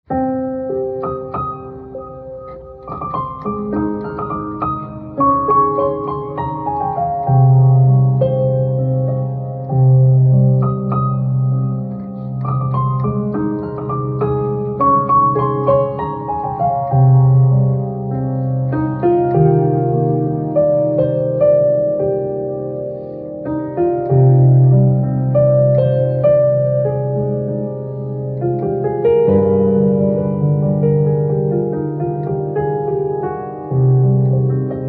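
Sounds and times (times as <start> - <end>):
piano music ringtone: 0.1 - 34.8.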